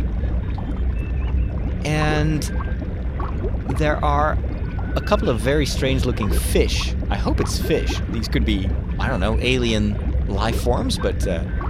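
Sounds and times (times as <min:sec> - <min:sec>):
water moving in a large tube-shaped aquarium: 0:00.0 - 0:11.6
speech: 0:01.8 - 0:02.7, 0:03.4 - 0:11.6.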